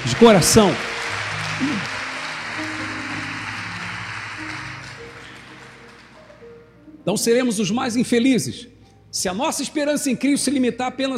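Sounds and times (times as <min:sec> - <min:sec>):
audience applause: 0:00.0 - 0:06.6
speech: 0:00.1 - 0:00.9, 0:01.6 - 0:01.9, 0:07.1 - 0:11.1
low sustained musical tones: 0:00.5 - 0:11.1.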